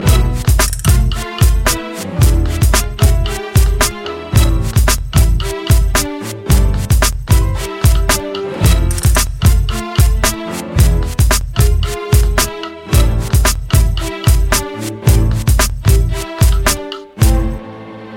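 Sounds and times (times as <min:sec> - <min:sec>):
sad tango intro music: 0:00.0 - 0:18.1.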